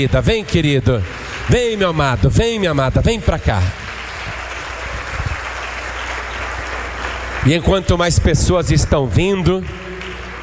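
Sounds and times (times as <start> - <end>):
speech: 0.0 - 3.8, 7.4 - 9.8
audience applauding: 0.0 - 10.4.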